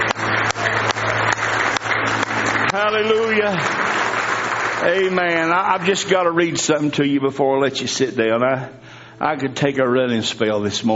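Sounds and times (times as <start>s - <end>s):
church congregation clapping hands in praise: 0.0s - 7.0s
speech: 2.9s - 3.8s, 4.8s - 10.9s.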